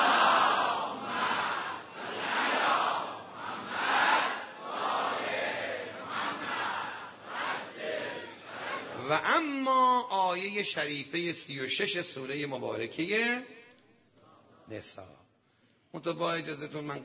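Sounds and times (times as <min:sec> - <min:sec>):
large audience loudly chanting the salawat in unison: 0:00.0 - 0:09.0
speech: 0:09.1 - 0:13.5, 0:14.7 - 0:15.2, 0:15.9 - 0:17.0.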